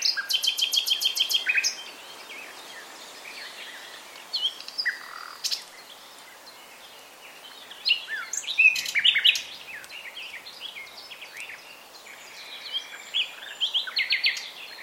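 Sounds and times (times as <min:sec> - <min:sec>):
common nightingale Luscinia megarhynchos singing: 0:00.0 - 0:14.8.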